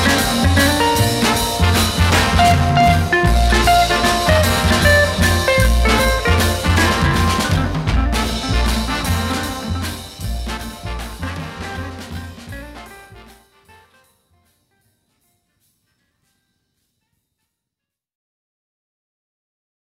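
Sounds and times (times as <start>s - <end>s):
guitars: 0.0s - 14.0s.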